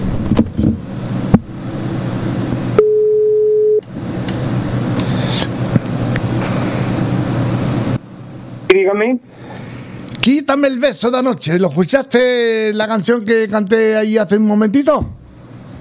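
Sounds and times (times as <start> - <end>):
low rumbling hum: 0.0 - 10.2, 15.0 - 15.8
telephone line tone while a phone call is placed: 2.8 - 3.8
speech: 8.9 - 9.3, 10.2 - 15.2.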